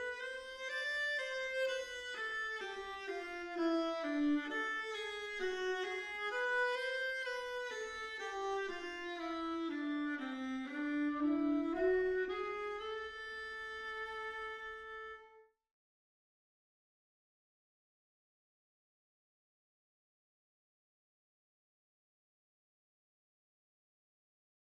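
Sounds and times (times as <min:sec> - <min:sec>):
viola: 0:00.0 - 0:15.5.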